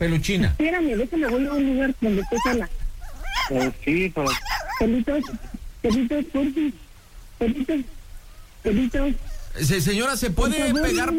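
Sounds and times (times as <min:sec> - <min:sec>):
speech: 0:00.0 - 0:02.8, 0:03.5 - 0:06.8, 0:07.4 - 0:08.0, 0:08.6 - 0:11.1
dog yelping and whimpering through a phone line: 0:00.9 - 0:06.1, 0:08.2 - 0:09.6, 0:10.6 - 0:11.1.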